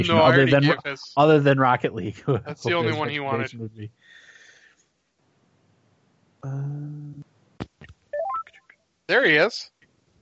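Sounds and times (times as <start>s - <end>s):
speech: 0.0s - 4.2s, 6.4s - 7.3s, 9.1s - 9.7s
telephone dialing tones adding caller: 8.2s - 8.5s.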